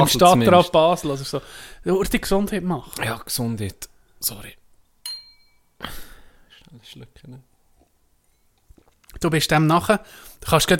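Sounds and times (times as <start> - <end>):
speech: 0.0 - 4.6, 5.8 - 6.0, 6.7 - 7.5, 9.2 - 10.7
glass clink: 5.0 - 5.8, 8.2 - 8.6.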